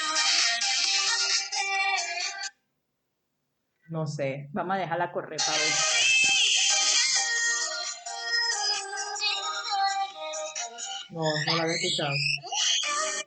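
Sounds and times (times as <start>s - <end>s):
K-pop girl group song playing: 0.0s - 2.6s, 5.4s - 13.2s
speech: 3.9s - 6.0s, 11.1s - 12.6s.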